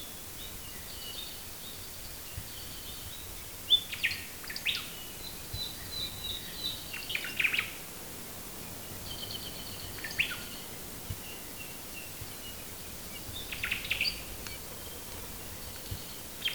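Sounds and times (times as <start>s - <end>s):
bird chirping: 0.4s - 7.9s, 8.6s - 16.5s.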